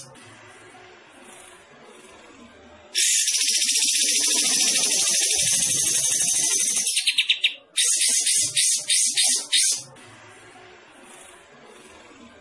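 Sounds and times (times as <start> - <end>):
bulbul singing rapid bright chattering notes: 3.0 - 9.9.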